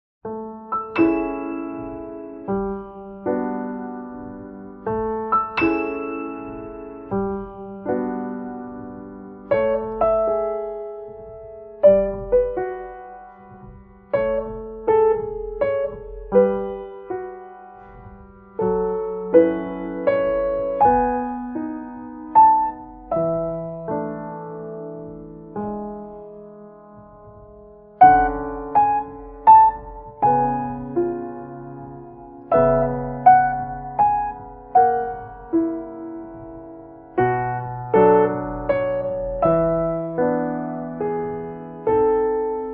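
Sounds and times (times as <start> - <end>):
piano cover: 0.2 - 42.7.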